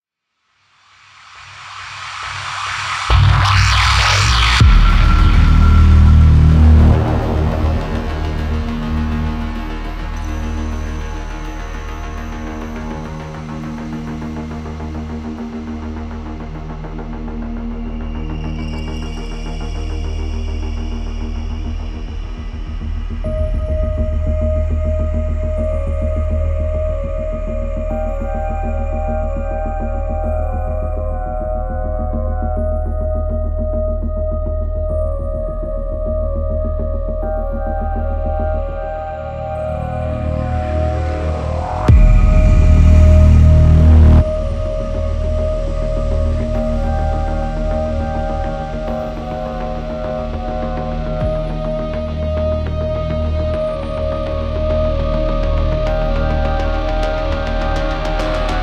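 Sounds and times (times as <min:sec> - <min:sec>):
base main ambient sound: 0:01.7 - 0:58.6.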